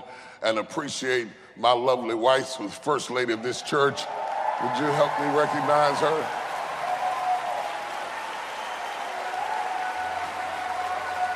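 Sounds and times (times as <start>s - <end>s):
speech: 0.4s - 6.4s
audience applause: 4.0s - 11.3s.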